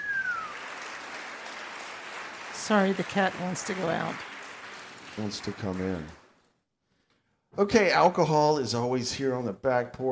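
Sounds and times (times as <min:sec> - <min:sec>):
round of applause: 0:00.0 - 0:06.4
speech: 0:02.7 - 0:04.3, 0:05.2 - 0:06.2, 0:07.6 - 0:10.0.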